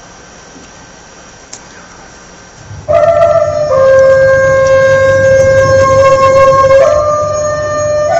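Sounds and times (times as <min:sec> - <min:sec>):
Chinese bamboo flute solo: 0:02.6 - 0:08.1.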